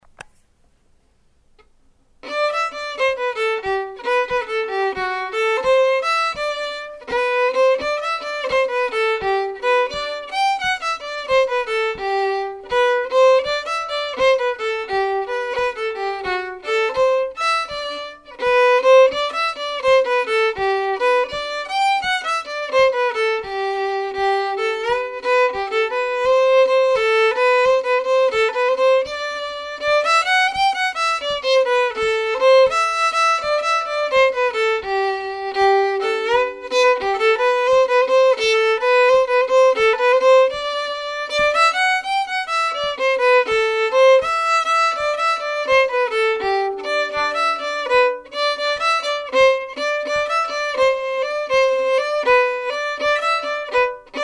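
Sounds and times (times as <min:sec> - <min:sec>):
fiddle playing a tarantella: 0:02.2 - 0:54.2.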